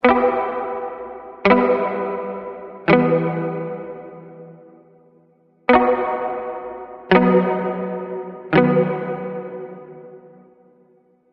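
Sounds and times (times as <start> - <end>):
guitar: 0.0 - 10.8.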